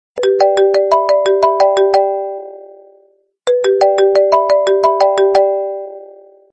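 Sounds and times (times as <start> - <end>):
marimba: 0.2 - 2.6, 3.5 - 6.2.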